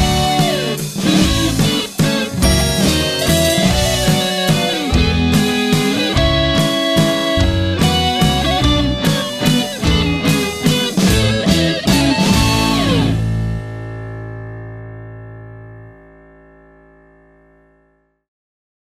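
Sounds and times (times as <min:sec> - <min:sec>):
waltz music: 0:00.0 - 0:13.5.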